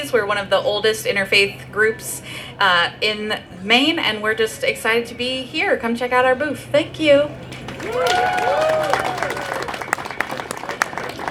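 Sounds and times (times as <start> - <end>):
speech: 0.0 - 9.4
audience applause for winners: 7.4 - 11.2.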